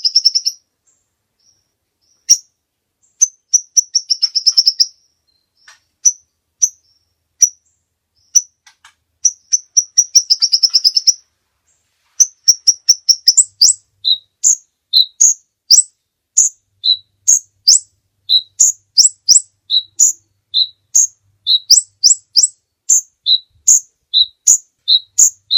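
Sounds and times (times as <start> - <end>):
bird giving buzzy chattering bursts: 0.0 - 0.6, 3.1 - 5.0, 9.2 - 11.2, 12.2 - 25.5.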